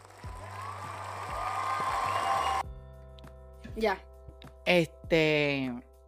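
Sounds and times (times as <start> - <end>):
applause sound effect: 0.0 - 2.6
speech: 3.8 - 4.1, 4.7 - 5.9.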